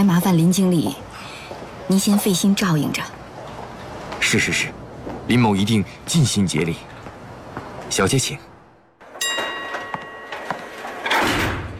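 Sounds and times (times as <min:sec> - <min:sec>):
speech: 0:00.0 - 0:01.1, 0:01.9 - 0:03.2, 0:04.3 - 0:06.9, 0:07.9 - 0:08.5
elevator doors sliding shut: 0:09.0 - 0:11.7
elevator bell chime: 0:09.2 - 0:10.8.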